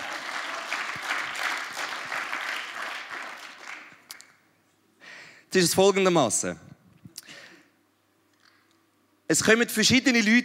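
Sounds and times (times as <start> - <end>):
crowd applauding: 0.0 - 4.2
speech: 5.5 - 6.7, 9.3 - 10.4.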